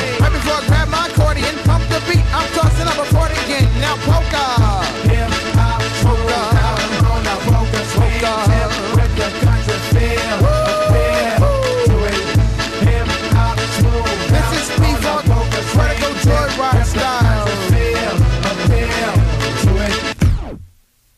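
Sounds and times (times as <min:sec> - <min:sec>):
P-Funk music: 0:00.0 - 0:20.6.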